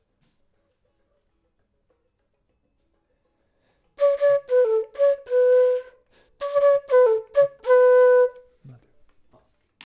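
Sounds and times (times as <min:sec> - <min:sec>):
flute: 0:04.0 - 0:08.7.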